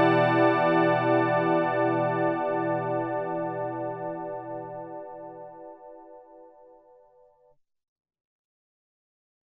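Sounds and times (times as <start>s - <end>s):
Korg DW-8000 electric piano: 0.0s - 6.9s.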